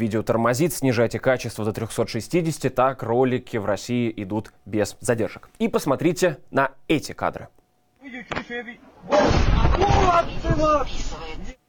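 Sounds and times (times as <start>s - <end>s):
speech: 0.0s - 11.6s
night shelling explosion with rumbling roar: 9.1s - 10.6s.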